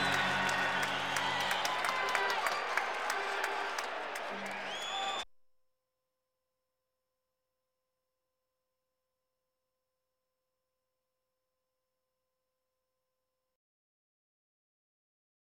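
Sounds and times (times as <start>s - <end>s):
sports crowd: 0.0s - 5.2s.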